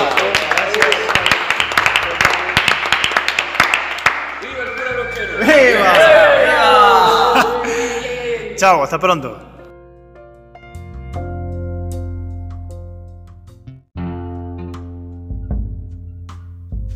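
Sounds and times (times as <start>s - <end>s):
audience applause: 0.0s - 7.8s
laughter: 5.2s - 8.6s
speech: 8.6s - 9.5s.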